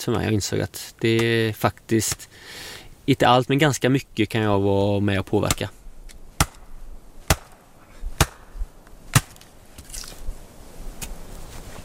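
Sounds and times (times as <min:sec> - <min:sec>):
speech: 0:00.0 - 0:05.8
axe chopping firewood: 0:06.4 - 0:07.6, 0:08.2 - 0:08.5, 0:09.1 - 0:09.5.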